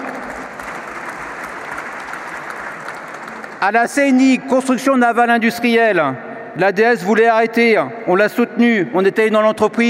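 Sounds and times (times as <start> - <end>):
audience applause: 0.0 - 3.8
speech: 3.6 - 9.8.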